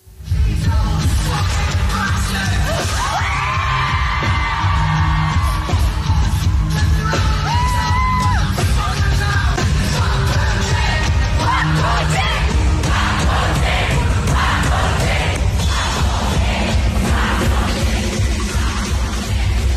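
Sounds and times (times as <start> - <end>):
large concert crowd singing and chanting: 0.4 - 19.7.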